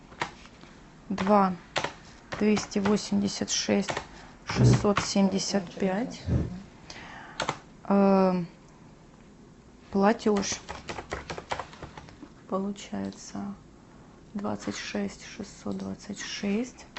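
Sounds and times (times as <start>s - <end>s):
speech: 1.1s - 1.7s, 2.4s - 6.6s, 7.9s - 8.6s, 9.9s - 10.8s, 12.5s - 13.6s, 14.4s - 16.9s
typing on a computer keyboard: 1.2s - 3.0s, 3.8s - 4.1s, 7.4s - 7.6s, 10.3s - 12.2s.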